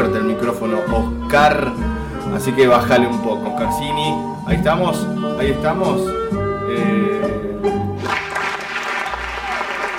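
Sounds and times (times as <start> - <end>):
speech: 0.4 - 6.9
sudden applause: 8.0 - 9.9.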